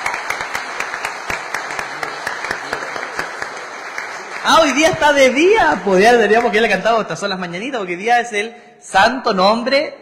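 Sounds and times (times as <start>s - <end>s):
applause: 0.0s - 7.0s
speech: 4.4s - 9.9s.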